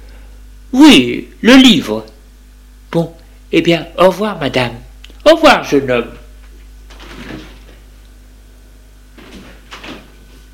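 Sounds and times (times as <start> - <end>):
speech: 0.7 - 2.1, 2.9 - 6.2
door closing: 6.9 - 7.8, 9.2 - 10.2.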